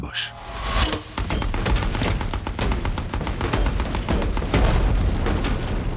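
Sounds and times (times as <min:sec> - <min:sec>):
machine gun fire: 0:01.2 - 0:05.9
shellfire explosions: 0:01.2 - 0:05.9.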